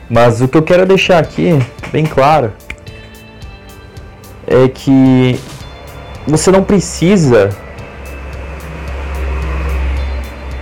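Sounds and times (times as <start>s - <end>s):
speech: 0.1s - 2.6s, 4.5s - 5.5s, 6.3s - 7.6s
motorcycle passing by: 7.4s - 10.6s.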